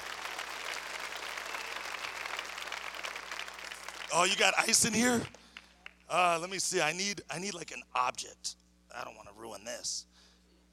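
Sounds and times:
audience applause: 0.0 - 5.4
speech: 4.1 - 5.4, 6.1 - 10.2.

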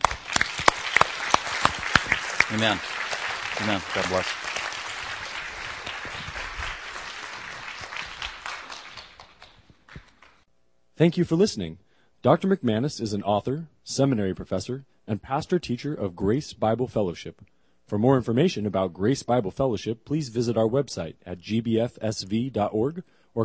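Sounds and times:
audience applause: 0.0 - 10.4
speech: 2.5 - 3.0, 3.6 - 4.5, 11.0 - 23.4.

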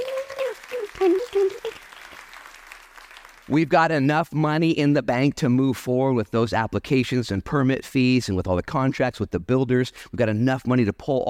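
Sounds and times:
audience applause: 0.0 - 3.7
speech: 3.5 - 11.2.

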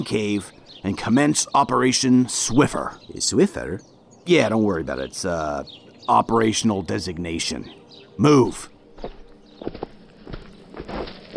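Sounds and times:
speech: 0.0 - 9.8
footsteps of someone sneaking into a cave: 8.9 - 11.3.

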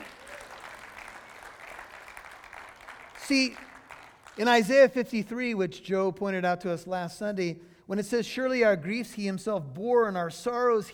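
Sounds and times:
audience clapping: 0.0 - 4.8
speech: 3.3 - 3.7, 4.4 - 10.9.

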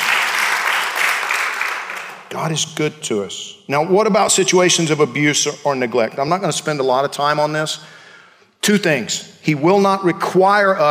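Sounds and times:
audience applause: 0.0 - 2.3
speech: 2.3 - 8.0, 8.7 - 10.8.

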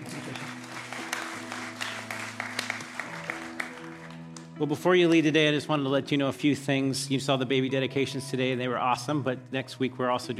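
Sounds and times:
audience clapping: 0.0 - 4.6
speech: 4.6 - 10.3.

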